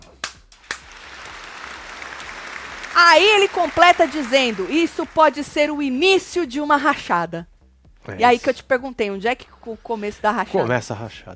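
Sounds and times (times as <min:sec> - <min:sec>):
applause: 0:00.2 - 0:06.3
speech: 0:03.0 - 0:11.3.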